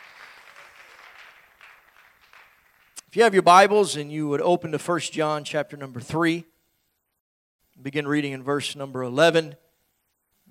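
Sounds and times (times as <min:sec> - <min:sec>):
church congregation clapping: 0:00.0 - 0:03.1
speech: 0:03.1 - 0:06.5, 0:07.8 - 0:09.6.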